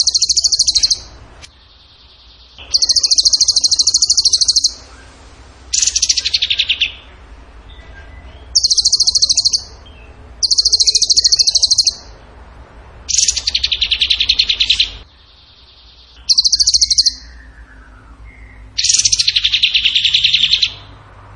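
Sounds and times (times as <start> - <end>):
bird singing high trills: 0.0 - 7.2, 7.8 - 12.2, 13.1 - 21.0.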